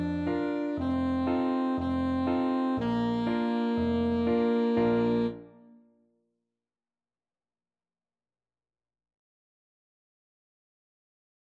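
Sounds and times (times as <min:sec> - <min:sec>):
saxophone: 0:00.0 - 0:05.8.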